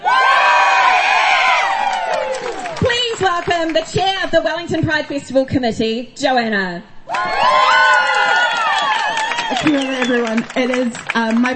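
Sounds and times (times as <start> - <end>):
high whoops: 0.0 - 2.8, 7.1 - 10.4
crowd at the Wellington Pride Festival cheering: 0.0 - 3.8, 7.1 - 11.5
speech: 3.5 - 7.6, 9.6 - 11.5.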